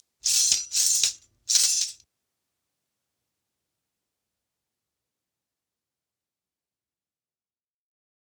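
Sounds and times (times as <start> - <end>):
Arabic tambourine jingles: 0.2 - 2.0.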